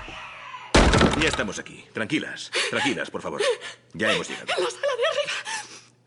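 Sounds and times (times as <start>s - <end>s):
police banging on a door in a Spanish-language radio drama: 0.8s - 1.6s
speech: 1.2s - 5.3s.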